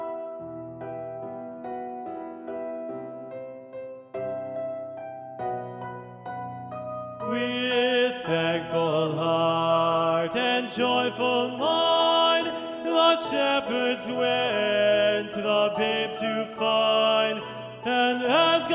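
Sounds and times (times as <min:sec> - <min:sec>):
tenor voice singing a carol: 0:07.2 - 0:18.7.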